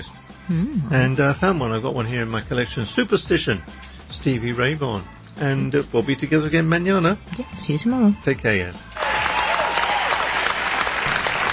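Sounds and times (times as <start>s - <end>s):
speech: 0.0s - 9.0s
applause for a guitarist: 9.0s - 11.5s.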